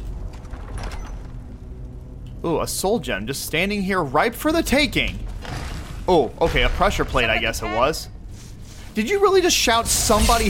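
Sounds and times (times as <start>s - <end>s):
heavy iron door grinding open: 0.0s - 2.0s, 5.3s - 7.0s
speech: 2.4s - 5.2s, 6.1s - 8.1s, 9.0s - 10.4s.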